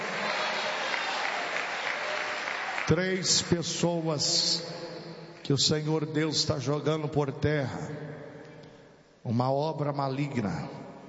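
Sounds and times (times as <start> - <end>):
church congregation clapping: 0.0 - 4.2
speech: 2.9 - 4.8, 5.5 - 8.2, 9.2 - 10.8.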